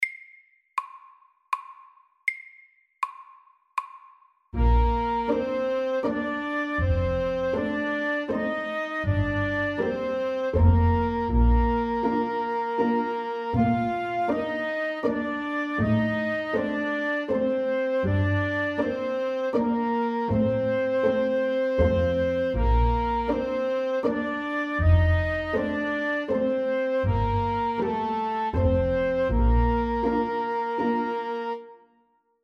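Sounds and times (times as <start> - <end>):
slow legato waltz: 4.6 - 31.8.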